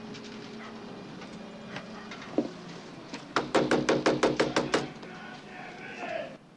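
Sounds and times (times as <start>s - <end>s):
noise: 0.0s - 6.5s
knocking on a door: 3.4s - 4.9s.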